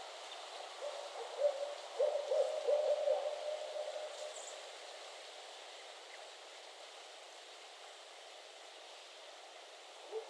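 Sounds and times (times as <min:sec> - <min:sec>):
background hiss: 0:00.0 - 0:10.2
barred owl hooting: 0:00.8 - 0:03.9.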